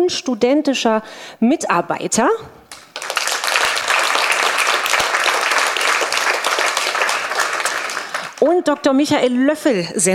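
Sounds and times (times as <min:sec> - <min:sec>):
speech: 0:00.0 - 0:02.6, 0:08.4 - 0:10.1
audience applause: 0:02.7 - 0:08.4.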